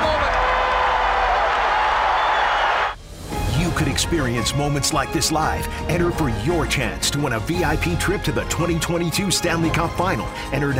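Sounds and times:
hockey crowd cheering after overtime goal: 0.0s - 3.0s
speech: 4.1s - 10.7s.

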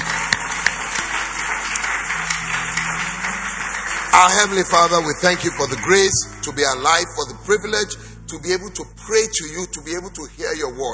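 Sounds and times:
audience applauding: 0.0s - 7.8s
speech: 4.1s - 10.9s.

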